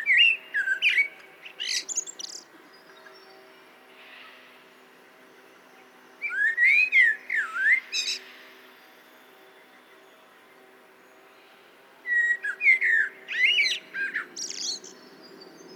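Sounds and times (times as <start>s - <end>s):
common blackbird singing: 0.0s - 3.4s, 6.2s - 8.4s, 12.0s - 15.7s.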